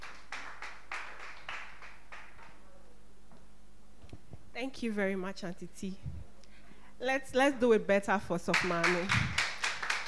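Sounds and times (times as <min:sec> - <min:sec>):
audience clapping in a steady rhythm: 0:00.0 - 0:02.6, 0:08.4 - 0:10.0
speech: 0:04.6 - 0:06.2, 0:07.0 - 0:09.3.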